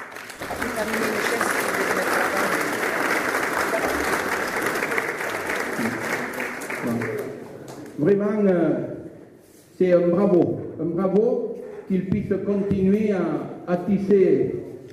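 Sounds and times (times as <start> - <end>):
audience applause: 0.0 - 7.9
speech: 0.8 - 1.4, 8.0 - 8.9, 9.8 - 14.6.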